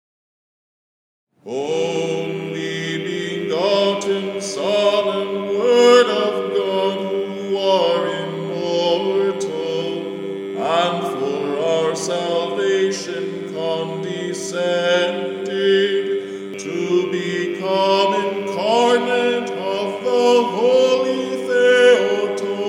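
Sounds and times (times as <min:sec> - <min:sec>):
divine liturgy hymn singing: 0:01.4 - 0:22.6.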